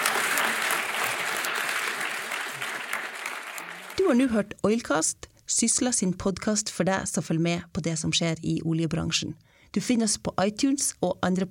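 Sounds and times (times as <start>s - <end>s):
audience applause: 0.0s - 4.1s
speech: 4.0s - 11.4s.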